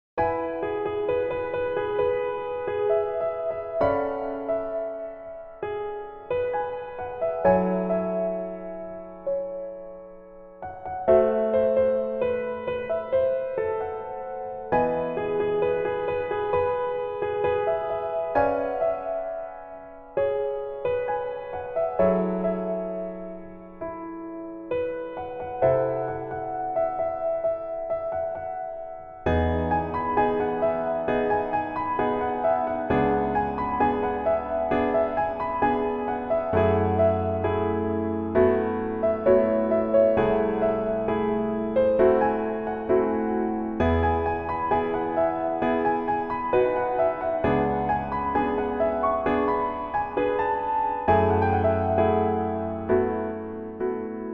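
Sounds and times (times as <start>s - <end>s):
piano version melody backing track: 0.2s - 54.3s.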